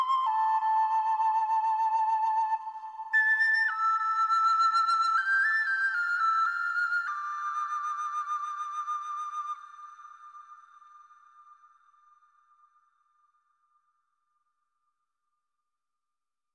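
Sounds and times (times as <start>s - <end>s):
first flute playing: 0.0s - 9.8s.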